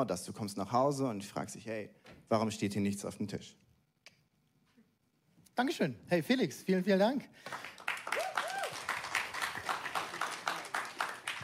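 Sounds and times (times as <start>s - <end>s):
speech: 0.0s - 3.6s, 5.6s - 8.2s
applause: 7.4s - 11.4s.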